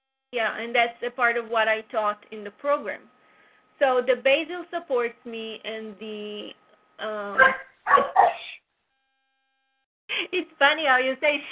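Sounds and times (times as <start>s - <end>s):
speech: 0.3s - 3.2s, 3.8s - 8.6s, 10.1s - 11.5s
dog barking: 7.4s - 8.6s.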